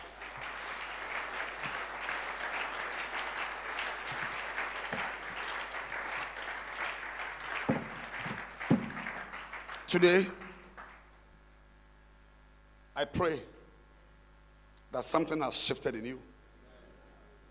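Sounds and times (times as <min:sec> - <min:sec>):
crowd clapping: 0:00.0 - 0:11.2
speech: 0:09.9 - 0:10.4, 0:13.1 - 0:13.6, 0:15.0 - 0:16.3.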